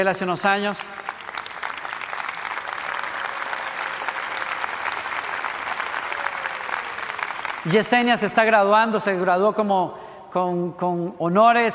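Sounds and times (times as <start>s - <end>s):
speech: 0.0s - 1.1s, 7.6s - 11.7s
applause: 0.0s - 8.6s.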